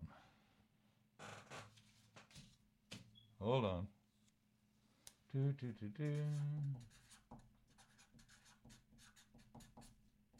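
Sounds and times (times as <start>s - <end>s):
speech: 3.4s - 4.0s, 5.3s - 7.0s
pen writing on paper: 6.0s - 10.3s.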